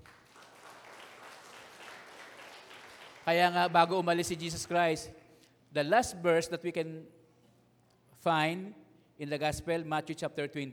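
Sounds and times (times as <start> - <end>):
church congregation applauding: 0.0 - 5.0
speech: 3.2 - 7.2, 8.2 - 10.7.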